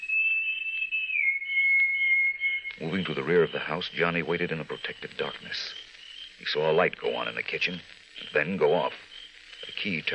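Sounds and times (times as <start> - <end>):
soft answering whistle: 0.0 - 3.7
speech: 2.8 - 9.1, 9.7 - 10.1.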